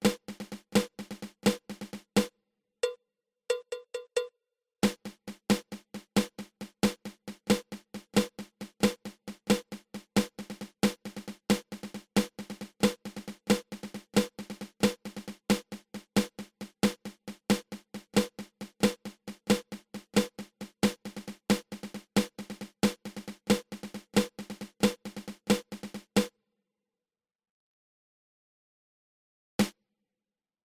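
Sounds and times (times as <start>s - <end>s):
drum flam drag: 0.0s - 2.3s, 4.8s - 26.3s.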